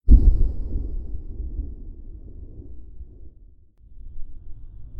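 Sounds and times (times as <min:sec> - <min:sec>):
bang: 0:00.1 - 0:02.0.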